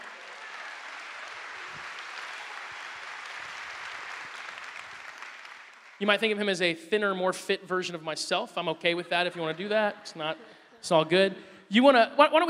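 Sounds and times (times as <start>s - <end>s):
audience applause: 0.0s - 6.0s
speech: 6.0s - 12.4s.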